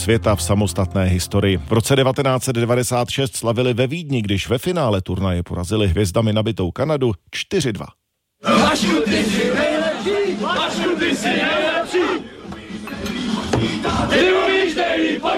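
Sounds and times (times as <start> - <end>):
speech: 0.0 - 12.3, 13.6 - 15.3
celebrating crowd chanting: 8.4 - 15.3.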